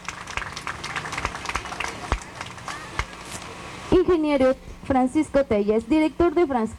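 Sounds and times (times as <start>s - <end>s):
audience applause: 0.0s - 3.6s
speech: 4.0s - 6.7s.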